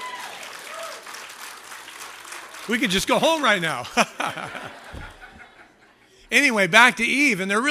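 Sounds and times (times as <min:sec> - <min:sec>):
church congregation applauding during a sermon: 0:00.0 - 0:05.6
speech: 0:02.7 - 0:05.1, 0:06.3 - 0:07.7
laughter: 0:03.7 - 0:06.2.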